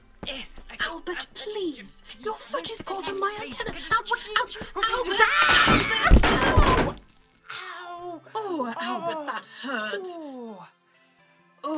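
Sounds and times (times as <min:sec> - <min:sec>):
speech: 0:00.2 - 0:06.9, 0:08.5 - 0:10.8
cabinet toppling: 0:05.2 - 0:07.3.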